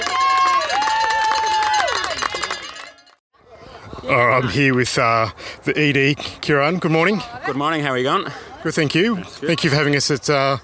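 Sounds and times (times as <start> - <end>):
lively crowd cheering and shouting: 0.0 - 3.0
speech: 4.1 - 10.6.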